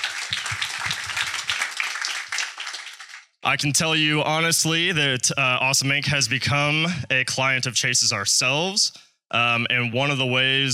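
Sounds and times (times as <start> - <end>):
round of applause: 0.0 - 3.4
speech: 3.4 - 10.7.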